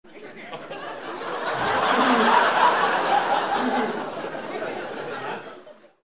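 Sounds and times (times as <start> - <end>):
person laughing: 1.6 - 2.7, 3.4 - 4.1.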